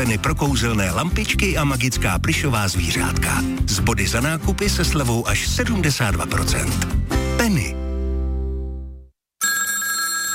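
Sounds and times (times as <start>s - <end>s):
speech: 0.0s - 7.8s
low-pitched telephone ring: 9.4s - 10.3s.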